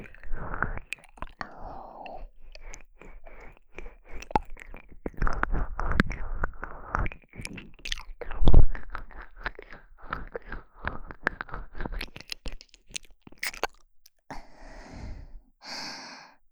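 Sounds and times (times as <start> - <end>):
ear licking in the right ear: 0.0 - 13.8.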